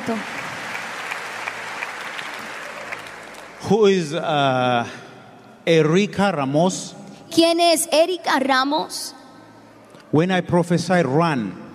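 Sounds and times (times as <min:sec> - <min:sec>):
congregation applauding in a bilingual church service: 0:00.0 - 0:03.9
speech: 0:00.1 - 0:00.4, 0:03.6 - 0:05.0, 0:05.6 - 0:09.2, 0:10.1 - 0:11.6.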